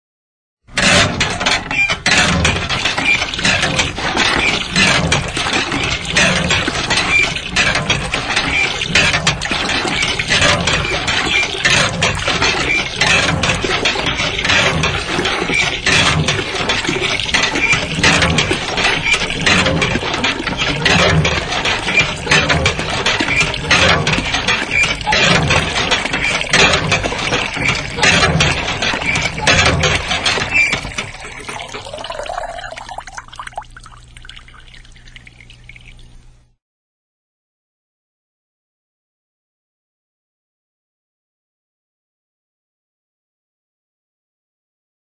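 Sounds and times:
water pump: 0:00.7 - 0:36.6.

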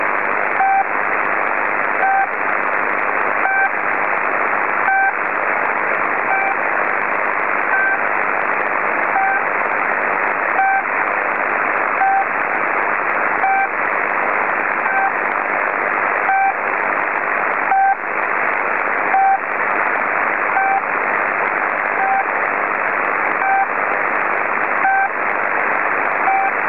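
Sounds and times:
noise: 0:00.0 - 0:26.6.

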